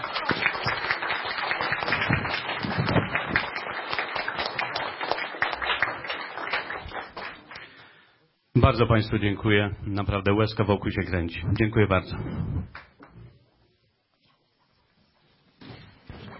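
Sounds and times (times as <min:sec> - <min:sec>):
audience applause: 0:00.0 - 0:07.8
speech: 0:08.7 - 0:12.8.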